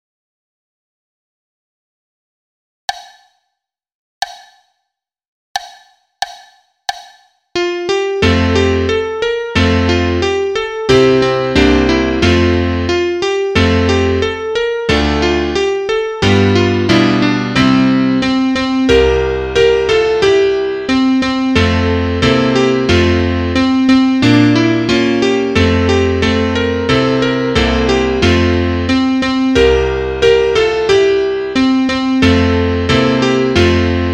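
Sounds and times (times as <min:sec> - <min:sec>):
solo piano: 0:07.6 - 0:34.1.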